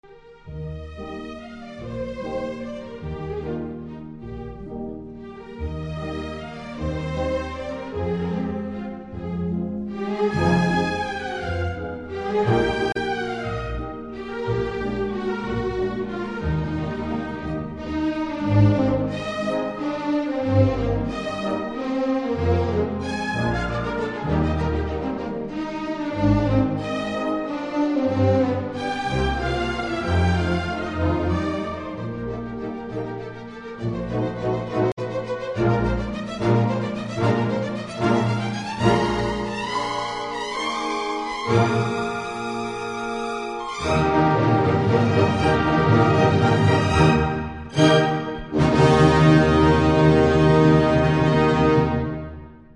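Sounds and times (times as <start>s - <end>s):
waltz music: 0.0s - 52.7s.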